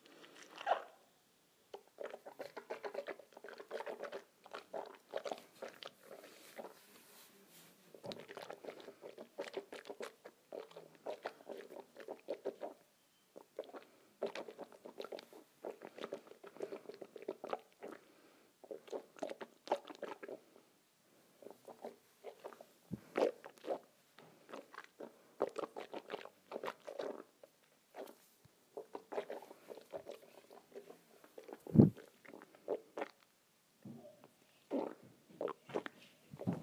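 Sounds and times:
water swishing in a mouth: 1.7s - 7.3s, 7.9s - 12.8s, 13.4s - 20.5s, 21.4s - 33.3s, 34.7s - 36.6s.

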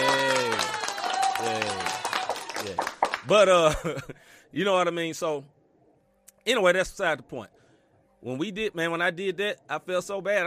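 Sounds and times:
hands clapping: 0.0s - 3.5s
speech: 3.3s - 5.6s, 6.4s - 7.6s, 8.2s - 10.4s.

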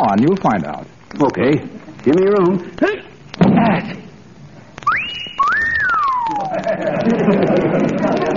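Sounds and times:
speech: 0.1s - 4.0s, 6.5s - 8.3s
synthetic wolf whistle from strength tester game: 4.8s - 6.7s
laughter: 6.2s - 8.3s.

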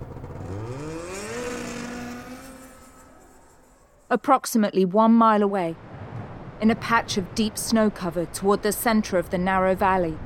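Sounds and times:
snowmobile engine driving off: 0.0s - 4.1s
speech: 4.1s - 5.8s, 6.6s - 10.2s.

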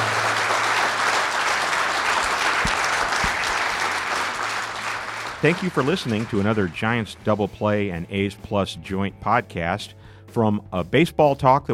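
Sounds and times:
audience applause: 0.0s - 7.1s
speech: 5.4s - 11.7s.

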